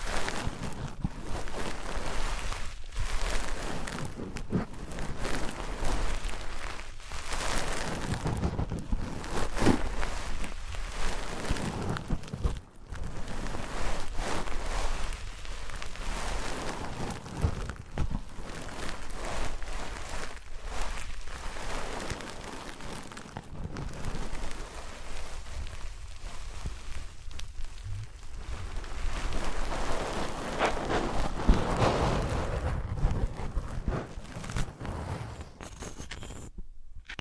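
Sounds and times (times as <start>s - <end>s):
wood, cork, sponge, foam, glass and plastic objects rubbed together: 0.0s - 37.1s
brief thumps: 27.8s - 28.4s.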